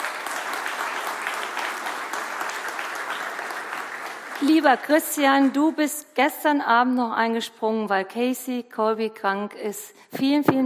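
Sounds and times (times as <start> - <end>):
audience applause: 0.0 - 5.2
speech: 4.4 - 10.6.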